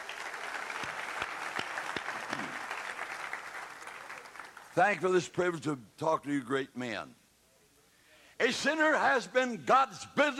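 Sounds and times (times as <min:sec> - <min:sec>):
audience crowd clapping hands: 0:00.0 - 0:04.8
speech: 0:04.8 - 0:07.2, 0:08.4 - 0:10.3.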